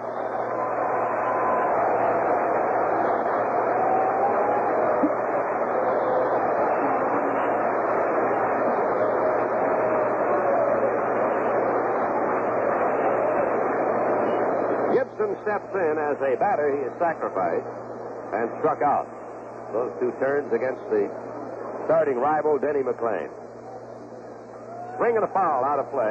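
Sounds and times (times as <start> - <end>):
stadium crowd applause for a pitcher: 0.0 - 16.0
speech: 15.4 - 21.3, 21.9 - 23.4, 25.0 - 26.0.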